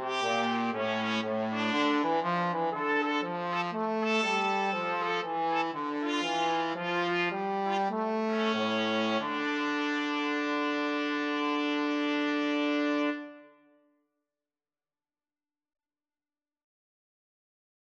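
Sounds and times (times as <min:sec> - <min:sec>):
trombone: 0:00.0 - 0:13.4
2 trumpets: 0:00.0 - 0:13.6.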